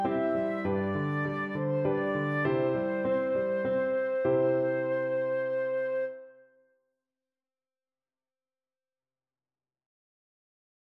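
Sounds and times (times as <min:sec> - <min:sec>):
flute: 0:00.0 - 0:06.6.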